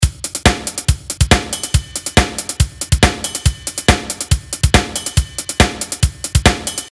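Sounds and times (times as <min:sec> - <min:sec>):
drum loop: 0:00.0 - 0:06.9.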